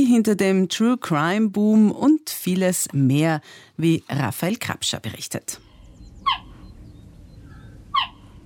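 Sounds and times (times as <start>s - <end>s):
speech: 0.0s - 6.4s
cheetah chirping like a bird: 5.6s - 8.4s
faint low rumble: 5.6s - 8.4s.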